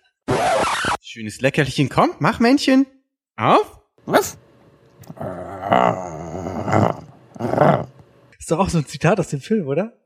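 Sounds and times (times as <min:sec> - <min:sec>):
speech: 0:01.1 - 0:04.4, 0:05.1 - 0:07.8, 0:08.5 - 0:10.0
person imitating a dog's growl: 0:05.0 - 0:08.0.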